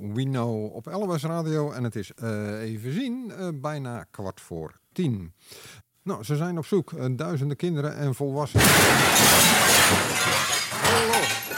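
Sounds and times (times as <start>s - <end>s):
speech: 0.1s - 10.3s
car crashing into building: 8.6s - 11.5s
glass shattering: 8.6s - 11.5s.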